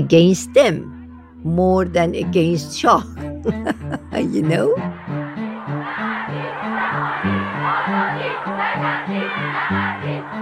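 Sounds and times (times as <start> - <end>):
speech: 0.0 - 5.1, 7.2 - 10.4
laughter: 3.3 - 4.5, 6.0 - 10.4
crowd noise: 5.6 - 10.4
crowd of women chanting for freedom: 5.9 - 10.4.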